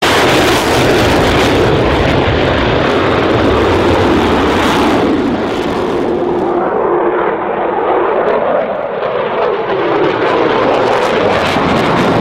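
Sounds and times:
F-22 Raptor jet fighter: 0:00.0 - 0:12.1.

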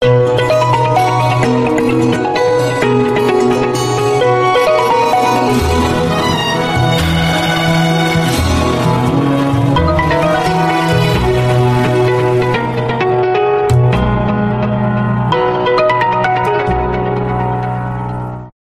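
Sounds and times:
remix music: 0:00.0 - 0:18.5.

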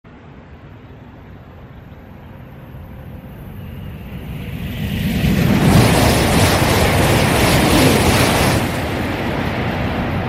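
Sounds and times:
train thundering: 0:05.3 - 0:10.2.

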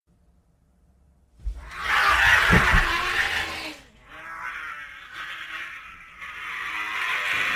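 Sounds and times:
screeching: 0:01.5 - 0:07.5.

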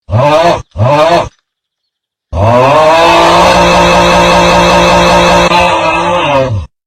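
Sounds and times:
chainsaw: 0:00.0 - 0:01.5, 0:02.3 - 0:06.7
person screaming: 0:03.4 - 0:06.7.

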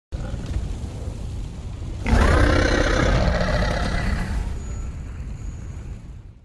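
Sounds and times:
small roar: 0:02.0 - 0:04.6.

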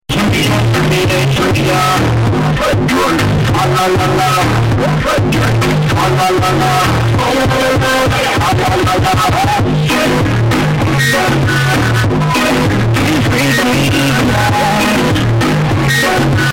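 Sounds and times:
boosted bass: 0:00.1 - 0:16.5.

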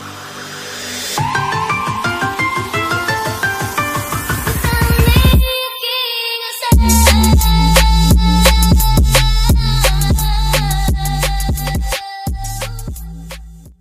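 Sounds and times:
drum and bass music: 0:00.0 - 0:05.6, 0:06.7 - 0:13.7.

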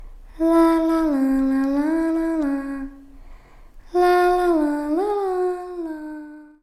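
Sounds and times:
creepy little girl singing lalala: 0:00.3 - 0:06.6.

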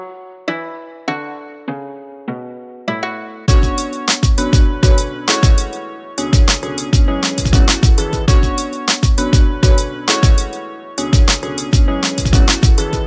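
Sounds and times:
synth grooves: 0:03.5 - 0:13.0.

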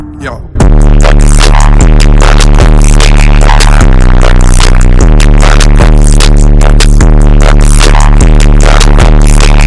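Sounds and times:
loud distorted ear rape noise: 0:00.6 - 0:09.6.

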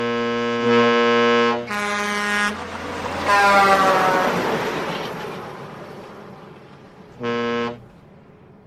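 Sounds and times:
truck horns: 0:00.0 - 0:04.7, 0:07.1 - 0:08.0.

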